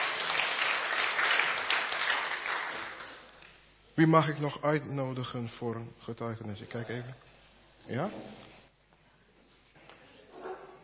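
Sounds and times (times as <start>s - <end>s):
audience applause: 0.0s - 3.4s
speech: 4.0s - 8.5s.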